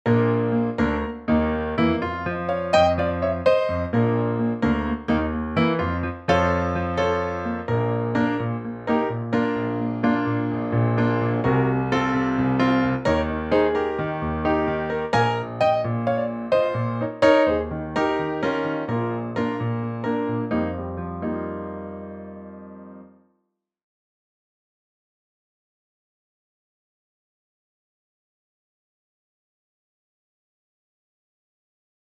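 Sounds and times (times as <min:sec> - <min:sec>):
piano: 0:00.0 - 0:23.4.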